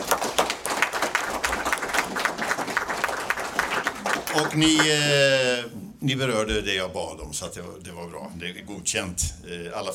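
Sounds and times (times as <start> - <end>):
audience applause: 0.0 - 5.2
speech: 4.4 - 9.9.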